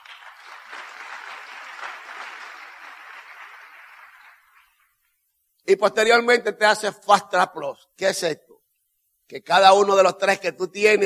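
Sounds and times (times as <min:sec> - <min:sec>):
audience applause: 0:00.0 - 0:05.0
speech: 0:05.7 - 0:08.5, 0:09.3 - 0:11.0.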